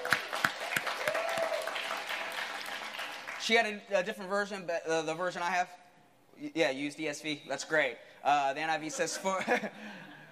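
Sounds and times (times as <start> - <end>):
audience applause: 0.0 - 3.4
speech: 3.5 - 5.8, 6.4 - 10.1.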